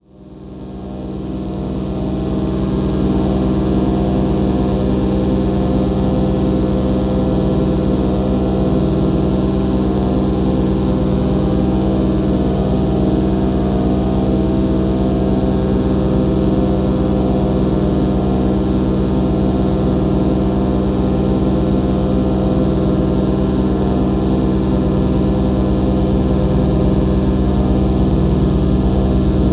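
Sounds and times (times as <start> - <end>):
minimal drone: 0.1 - 29.5.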